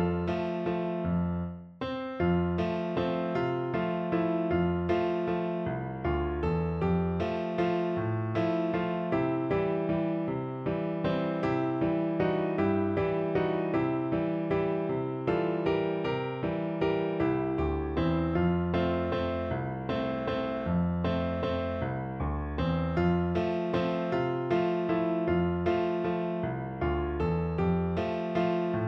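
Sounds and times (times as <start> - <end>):
piano piece: 0.0 - 28.8.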